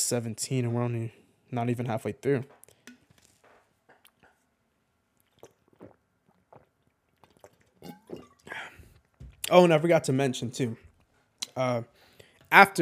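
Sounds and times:
speech: 0.1 - 2.6, 9.5 - 10.8, 11.6 - 12.8
person drinking water: 2.6 - 9.5.

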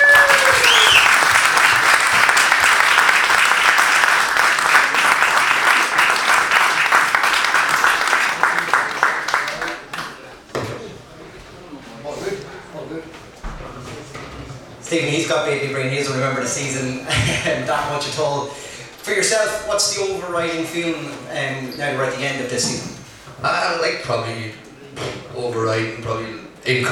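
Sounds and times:
crowd applause: 0.0 - 10.2
speech: 15.4 - 24.7, 25.4 - 26.9.

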